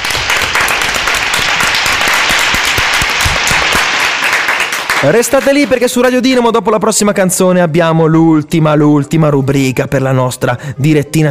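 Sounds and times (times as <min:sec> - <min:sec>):
audience applause: 0:00.0 - 0:05.8
speech: 0:05.0 - 0:11.2.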